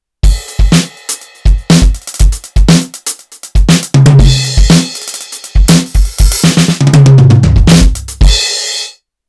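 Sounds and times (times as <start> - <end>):
Roland TD-4KP electronic drum kit: 0.2 - 9.0.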